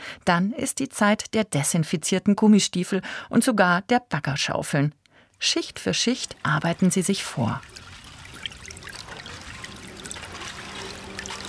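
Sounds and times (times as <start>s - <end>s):
speech: 0.2s - 7.9s
groundwater seeping between steel sheet piles: 5.6s - 11.4s.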